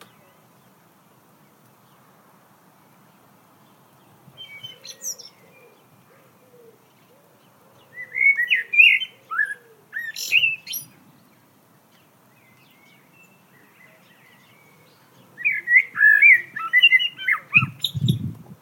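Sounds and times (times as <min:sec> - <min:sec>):
common blackbird singing: 0:03.6 - 0:18.3.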